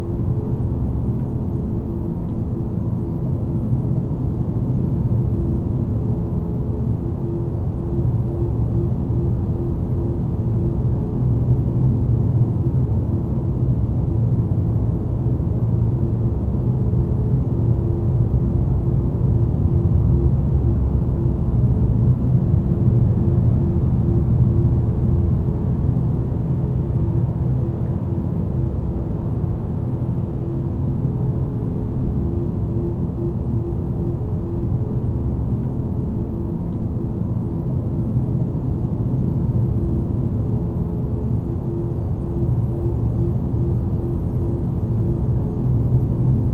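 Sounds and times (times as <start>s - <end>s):
engine room ambience: 0.0s - 46.5s.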